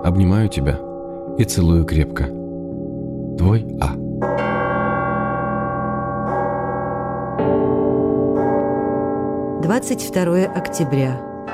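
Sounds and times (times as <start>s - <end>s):
church bells ringing: 0.0s - 11.5s
speech: 0.1s - 2.4s, 3.4s - 4.3s, 9.6s - 11.3s.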